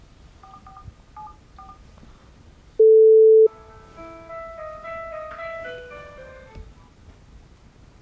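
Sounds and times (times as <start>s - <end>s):
telephone ringback tone: 2.8s - 3.5s
soft simple electronic melody: 3.5s - 6.5s.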